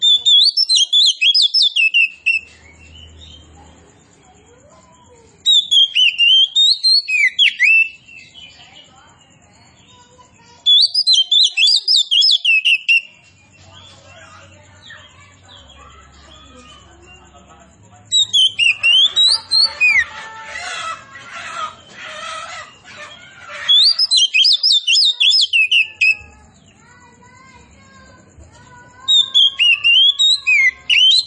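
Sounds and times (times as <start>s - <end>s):
Oriental magpie-robin of the form kacer poci singing loud varied whistles and trills: 0.0s - 3.5s, 5.4s - 17.3s, 18.1s - 20.1s, 22.7s - 26.8s, 29.0s - 31.2s.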